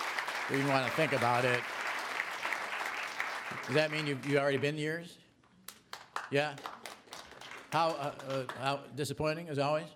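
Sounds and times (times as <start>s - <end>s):
audience applauding: 0.0s - 4.8s, 5.9s - 8.8s
speech: 0.5s - 1.8s, 3.5s - 5.2s, 6.3s - 6.7s, 7.7s - 9.9s.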